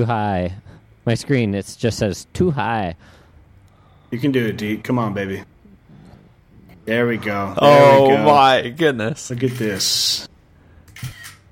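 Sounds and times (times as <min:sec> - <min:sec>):
speech: 0:00.0 - 0:03.2, 0:04.1 - 0:05.5, 0:06.9 - 0:10.3
in-game screenshot camera shutter sound: 0:10.9 - 0:11.5.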